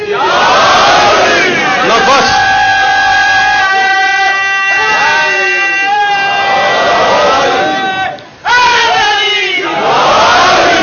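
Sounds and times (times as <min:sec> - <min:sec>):
crowd chanting a slogan in unison: 0:00.1 - 0:10.8.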